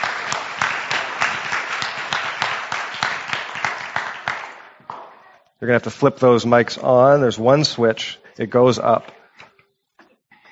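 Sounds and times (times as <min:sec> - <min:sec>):
audience clapping welcoming a couple to the stage at a church gathering: 0:00.0 - 0:05.2
speech: 0:05.6 - 0:09.2.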